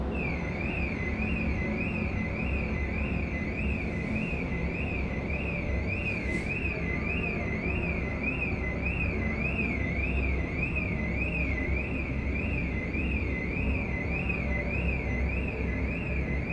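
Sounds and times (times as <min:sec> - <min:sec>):
car alarm: 0:00.2 - 0:16.5.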